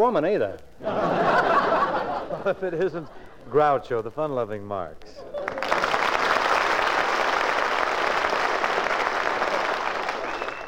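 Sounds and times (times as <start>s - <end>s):
speech: 0.0s - 1.4s, 2.4s - 5.3s
laughter: 0.8s - 3.3s
studio audience applause: 5.3s - 10.6s.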